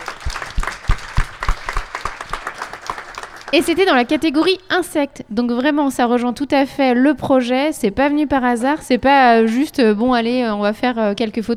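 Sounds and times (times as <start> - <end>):
audience applause: 0.0 - 4.4
speech: 3.5 - 11.5.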